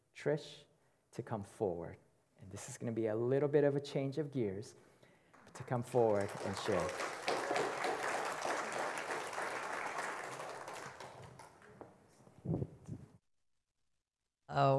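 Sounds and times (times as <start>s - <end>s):
speech: 0.2s - 4.9s, 5.6s - 7.2s, 14.6s - 14.7s
audience clapping: 5.3s - 12.0s.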